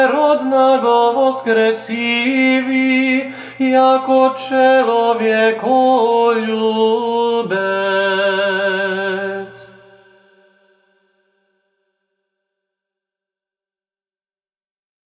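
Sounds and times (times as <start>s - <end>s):
Serbian orthodox chant: 0.0s - 10.8s.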